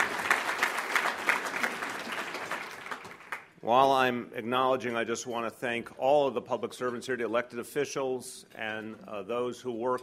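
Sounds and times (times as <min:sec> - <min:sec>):
round of applause: 0:00.0 - 0:03.6
speech: 0:03.7 - 0:10.0.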